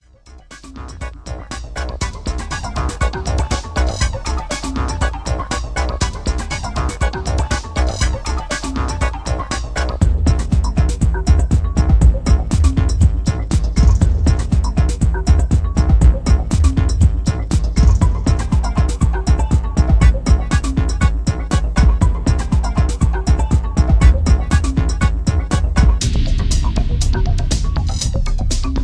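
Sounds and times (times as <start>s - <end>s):
electro music: 0.0s - 28.8s.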